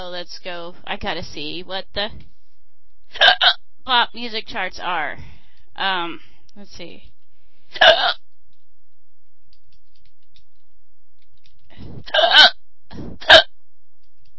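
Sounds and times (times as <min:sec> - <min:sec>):
speech: 0:00.1 - 0:02.3, 0:03.1 - 0:07.1, 0:07.7 - 0:08.2, 0:11.8 - 0:13.4
hiccups: 0:03.2 - 0:03.6, 0:07.8 - 0:08.2, 0:12.1 - 0:12.6, 0:13.2 - 0:13.5.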